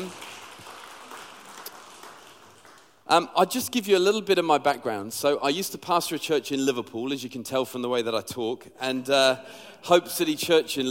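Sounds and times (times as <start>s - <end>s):
church audience applauding: 0.0s - 3.0s
speech: 3.1s - 10.8s.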